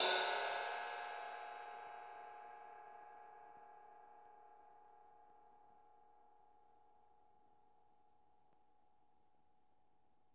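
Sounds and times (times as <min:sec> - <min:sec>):
ride cymbal: 0:00.0 - 0:01.3.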